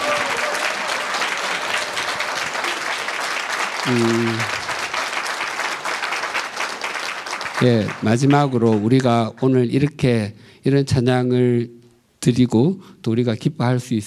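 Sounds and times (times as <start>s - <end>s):
audience applause for the choir: 0.0s - 9.2s
speech: 3.9s - 4.6s, 7.6s - 14.0s.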